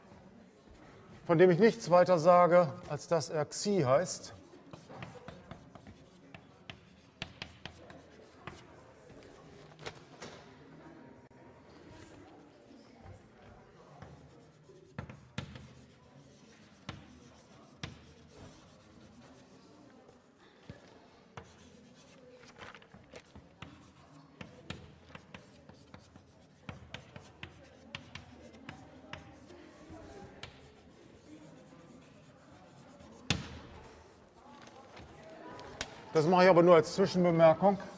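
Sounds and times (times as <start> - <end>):
speech: 1.3 - 4.4, 36.2 - 37.9
chalk writing the Greek letter Xi on a board: 2.9 - 9.4, 13.1 - 20.3, 21.3 - 34.2.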